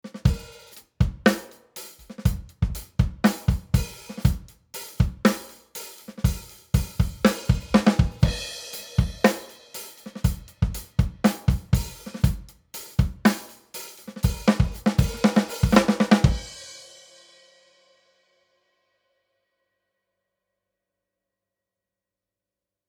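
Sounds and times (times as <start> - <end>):
drums without EQ: 0.0 - 17.9.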